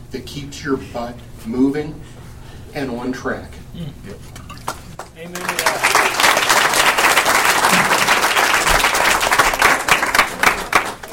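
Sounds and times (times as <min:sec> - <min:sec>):
speech: 0:00.1 - 0:04.4, 0:05.2 - 0:06.2
applause: 0:04.7 - 0:11.1.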